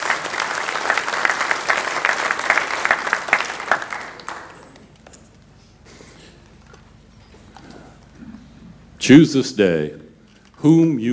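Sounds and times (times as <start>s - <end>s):
audience hand clapping in praise: 0.0s - 5.2s
speech: 9.1s - 10.0s, 10.6s - 11.1s.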